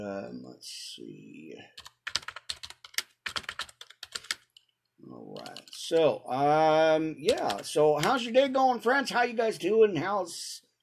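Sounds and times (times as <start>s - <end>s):
speech: 0.0s - 1.9s, 5.8s - 10.6s
computer keyboard typing: 1.8s - 4.6s, 5.4s - 6.1s, 7.3s - 8.2s.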